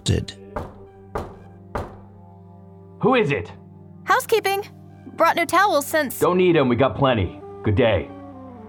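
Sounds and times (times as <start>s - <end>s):
speech: 0.0s - 0.4s, 3.0s - 8.2s
knock on a door: 0.6s - 2.1s.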